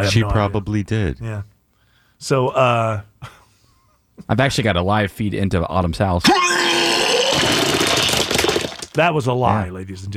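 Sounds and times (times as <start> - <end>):
speech: 0.0 - 1.5, 2.2 - 3.4, 4.2 - 6.6, 9.0 - 10.1
vomiting sound effect: 6.3 - 9.0.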